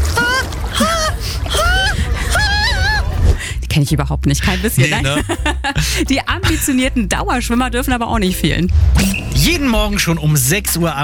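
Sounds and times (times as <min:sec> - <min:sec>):
laughter: 0:00.2 - 0:03.6, 0:04.3 - 0:07.0
person gasping and whimpering getting into cold pool water: 0:00.2 - 0:03.6, 0:05.8 - 0:06.1
murmur: 0:00.8 - 0:05.3
speech: 0:03.8 - 0:11.0.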